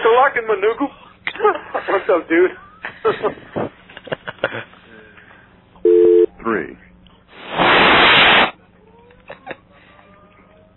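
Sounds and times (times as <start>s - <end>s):
speech: 0.2s - 1.0s, 1.9s - 3.7s
person blowing into microphone: 7.4s - 8.5s.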